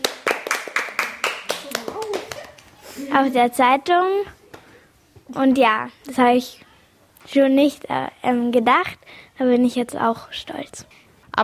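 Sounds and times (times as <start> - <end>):
people clapping hands: 0.0 - 2.9
speech: 3.1 - 4.4, 5.3 - 6.6, 7.3 - 11.4.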